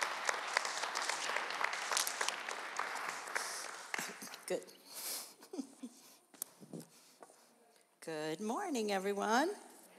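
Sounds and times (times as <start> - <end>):
audience applause welcoming a woman to a church stage: 0.0 - 4.4
speech: 4.5 - 4.8, 8.1 - 9.7.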